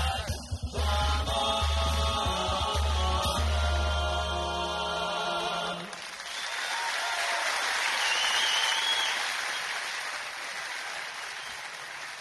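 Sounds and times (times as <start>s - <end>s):
choir song ending: 0.0s - 5.8s
audience applause for a choir: 5.8s - 12.2s.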